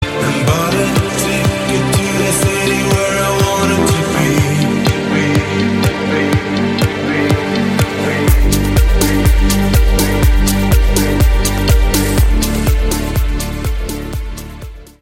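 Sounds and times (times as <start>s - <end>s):
electronic dance music: 0.0s - 14.9s.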